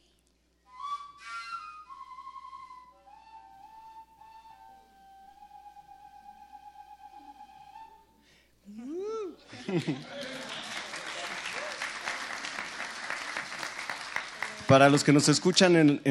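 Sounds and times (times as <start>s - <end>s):
PVC overtone flute being played: 0.6s - 8.3s
laughter: 9.0s - 12.2s
speech: 9.7s - 10.4s, 14.7s - 16.0s.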